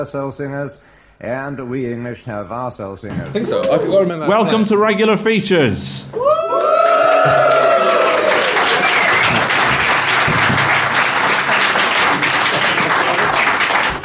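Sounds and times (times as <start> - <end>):
speech: 0.0 - 8.0
audience applause: 6.4 - 14.0.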